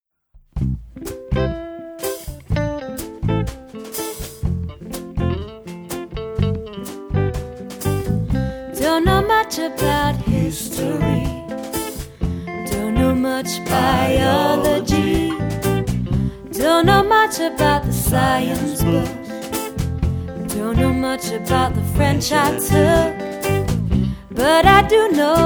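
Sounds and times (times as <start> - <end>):
bass: 0.4 - 25.4
drums: 0.4 - 25.4
guitar: 0.5 - 25.4
person singing: 8.8 - 15.8, 16.5 - 19.7, 20.4 - 23.6, 24.3 - 25.4
backing vocals: 8.8 - 19.6, 20.3 - 23.4.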